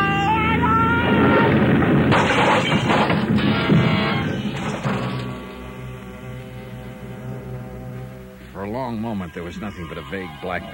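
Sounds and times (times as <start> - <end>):
aircraft crash-up: 1.0 - 6.1
speech: 8.9 - 10.7.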